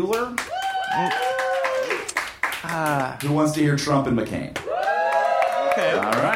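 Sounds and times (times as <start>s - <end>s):
speech: 0.0s - 1.3s, 2.7s - 4.7s, 5.8s - 6.3s
audience applause: 0.4s - 3.2s, 4.6s - 6.3s.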